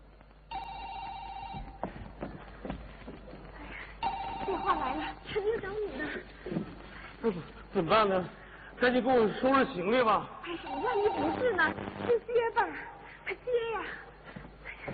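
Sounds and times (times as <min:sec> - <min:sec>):
electronic doorbell ringing: 0:00.5 - 0:01.8, 0:04.0 - 0:05.1
people shuffling: 0:01.1 - 0:08.7, 0:12.7 - 0:14.9
speech: 0:04.6 - 0:06.4, 0:07.2 - 0:14.1.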